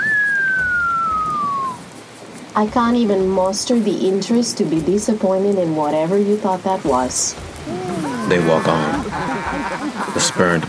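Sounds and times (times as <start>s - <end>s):
man whistling at a woman: 0.0s - 1.8s
speech: 2.6s - 10.6s
laughter: 7.6s - 10.6s.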